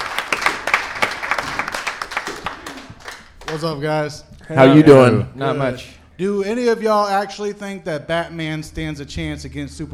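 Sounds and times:
crowd applauding: 0.0s - 3.8s
speech: 3.5s - 9.9s.

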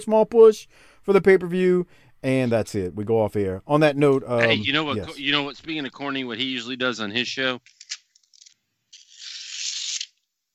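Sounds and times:
speech: 0.0s - 7.8s
paper post-it note being ripped up: 7.6s - 10.3s.

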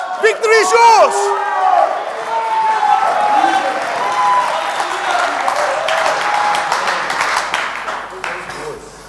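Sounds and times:
audience shouting: 0.0s - 7.1s
audience applauding: 0.0s - 8.9s
speech: 0.2s - 1.6s.

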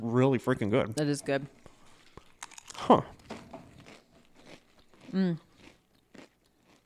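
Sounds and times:
speech: 0.4s - 1.7s, 2.9s - 3.2s, 5.1s - 5.5s
chewing: 1.5s - 6.8s
Pringles potato chips crunching: 2.2s - 6.8s.

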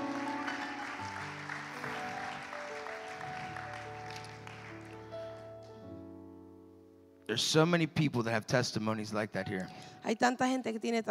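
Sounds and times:
audience applause: 0.0s - 5.7s
speech: 7.3s - 11.1s.

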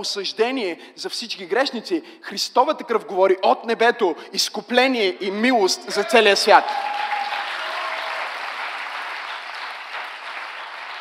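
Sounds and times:
speech: 0.0s - 7.1s
crowd applause: 6.0s - 10.9s.

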